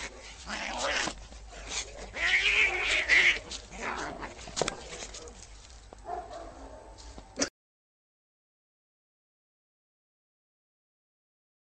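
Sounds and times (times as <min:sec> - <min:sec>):
angry cat: 0:00.0 - 0:04.9.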